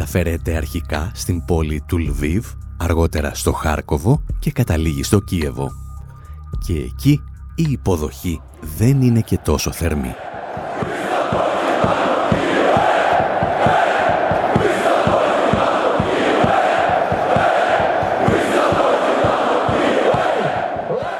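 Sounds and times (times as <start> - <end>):
speech: 0.1 - 5.8, 6.6 - 10.3
football ultras chanting at a match: 9.3 - 21.1.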